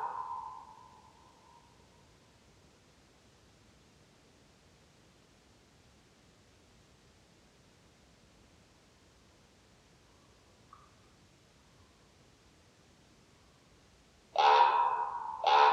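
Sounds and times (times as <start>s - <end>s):
common raven croaking: 0.0s - 0.9s, 14.4s - 15.7s.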